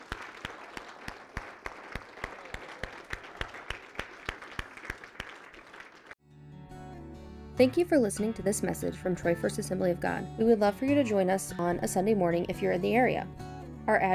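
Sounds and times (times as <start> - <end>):
audience clapping hands: 0.0 - 6.2
speech: 7.6 - 14.1.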